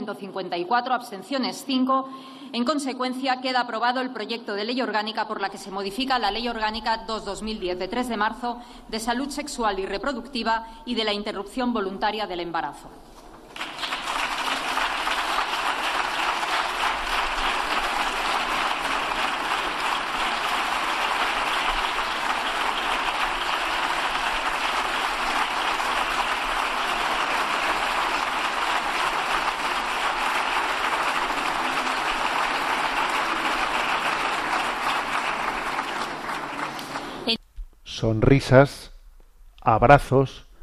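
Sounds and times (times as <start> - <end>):
speech: 0.1 - 13.1, 38.0 - 38.9, 39.7 - 40.5
parliament applause after vote: 13.3 - 37.4.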